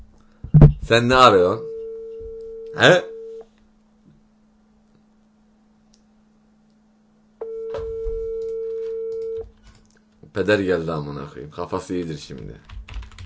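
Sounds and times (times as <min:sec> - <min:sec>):
faint hum: 0:00.0 - 0:13.2
speech: 0:00.9 - 0:01.7, 0:02.8 - 0:03.1, 0:10.4 - 0:12.8
telephone call tone: 0:01.6 - 0:03.4, 0:07.4 - 0:09.4.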